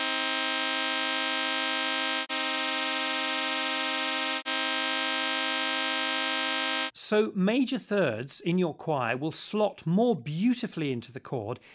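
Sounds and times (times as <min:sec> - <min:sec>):
minor third chords, pure then equal tuning: 0:00.0 - 0:06.9
speech: 0:07.1 - 0:11.7.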